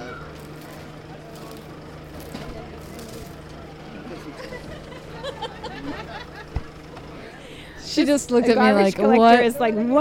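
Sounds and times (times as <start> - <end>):
street sweeper sweeping the street with a broom: 0.1 - 3.7
laughter: 3.1 - 7.8
speech: 8.0 - 9.9.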